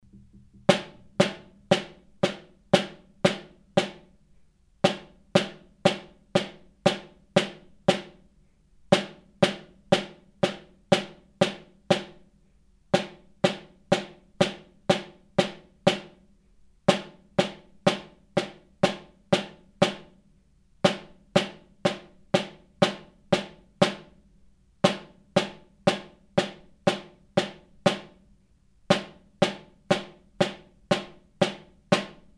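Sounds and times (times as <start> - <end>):
snare drum: 0.0 - 4.2, 4.8 - 8.2, 8.9 - 12.2, 13.0 - 16.2, 16.9 - 20.2, 20.8 - 24.2, 24.8 - 28.3, 28.9 - 32.3.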